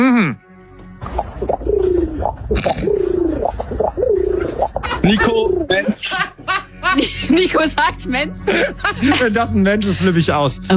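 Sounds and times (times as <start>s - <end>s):
speech: 0.0s - 0.4s, 5.1s - 6.3s, 7.0s - 10.7s
human imitating a pigeon cooing: 1.5s - 5.7s
laughter: 4.7s - 7.7s, 8.4s - 9.6s.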